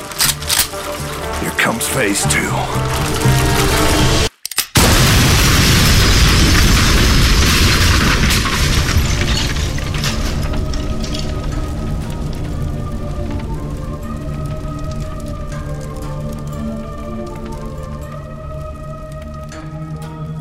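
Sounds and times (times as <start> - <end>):
speech: 1.6 - 4.0
propane tank explosion set off by a shotgun blast, with rumbling roar: 4.8 - 16.2.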